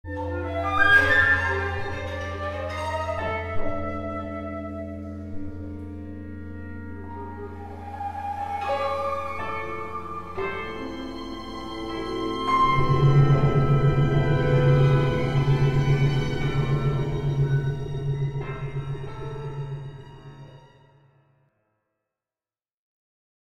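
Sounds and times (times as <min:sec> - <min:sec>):
music: 0:00.0 - 0:22.3.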